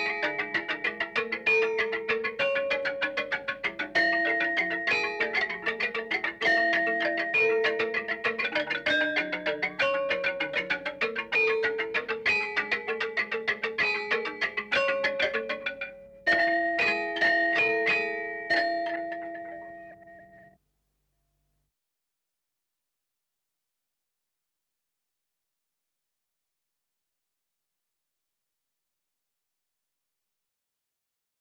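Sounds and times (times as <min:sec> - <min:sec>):
gambang playing: 0:00.0 - 0:20.5.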